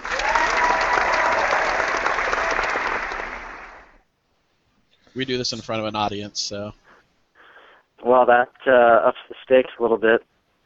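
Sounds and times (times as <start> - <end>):
audience applause: 0.0 - 4.0
speech: 5.2 - 6.8, 8.1 - 10.3.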